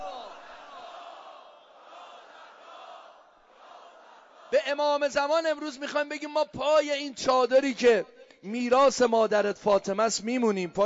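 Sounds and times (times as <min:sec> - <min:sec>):
large crowd shouting a religious chant: 0:00.0 - 0:04.6
speech: 0:04.5 - 0:10.8.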